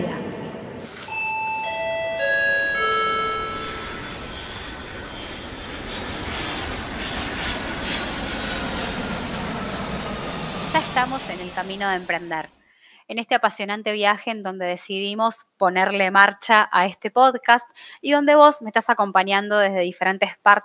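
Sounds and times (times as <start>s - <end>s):
aircraft engine roar: 0.0s - 12.6s
chime of several staggered tones: 1.1s - 4.7s
speech: 11.0s - 20.6s.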